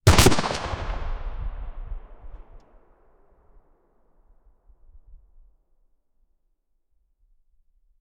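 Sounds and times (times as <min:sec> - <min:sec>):
cannon: 0:00.0 - 0:03.2.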